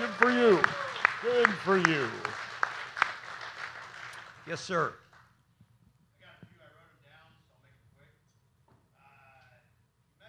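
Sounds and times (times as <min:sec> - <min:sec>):
audience applause: 0:00.0 - 0:04.9
speech: 0:01.4 - 0:02.3, 0:04.5 - 0:05.0.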